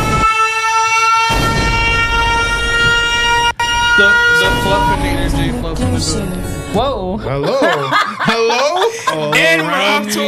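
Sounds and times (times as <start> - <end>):
siren sound bite: 0.0 - 7.2
speech: 5.8 - 10.2
laughter: 7.0 - 10.2.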